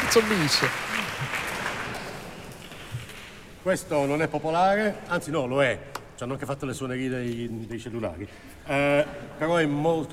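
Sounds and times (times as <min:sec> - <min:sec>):
concert audience applauding a cellist: 0:00.0 - 0:03.4
speech: 0:00.1 - 0:01.0, 0:03.6 - 0:10.1.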